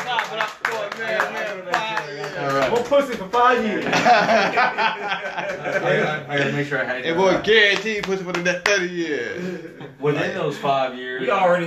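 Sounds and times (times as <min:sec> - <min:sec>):
audience clapping: 0:00.0 - 0:03.7, 0:07.7 - 0:09.0
speech: 0:00.3 - 0:11.6
laughter: 0:03.4 - 0:06.7.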